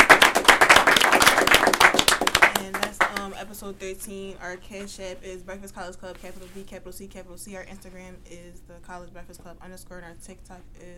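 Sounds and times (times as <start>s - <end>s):
audience clapping for an interview guest: 0.0s - 3.3s
speech: 3.7s - 10.9s.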